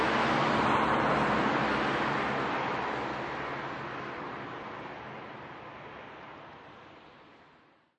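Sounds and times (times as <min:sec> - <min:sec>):
medium to heavy night traffic with cars driving by: 0:00.0 - 0:06.1.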